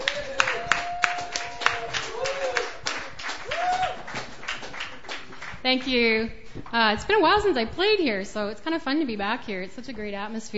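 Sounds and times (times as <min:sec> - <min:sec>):
open mic audience clapping: 0:00.0 - 0:06.0
speech: 0:05.6 - 0:10.5.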